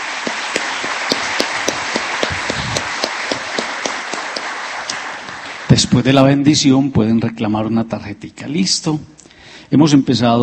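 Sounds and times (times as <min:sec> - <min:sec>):
audience applause: 0:00.0 - 0:06.4
speech: 0:05.7 - 0:10.4.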